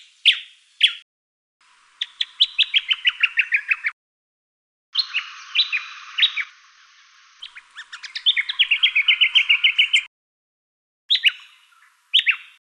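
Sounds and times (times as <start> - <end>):
Yellow-faced honeyeater calls in a Canberra garden: 2.0 - 4.0, 5.0 - 6.6, 7.4 - 10.1, 11.1 - 12.6.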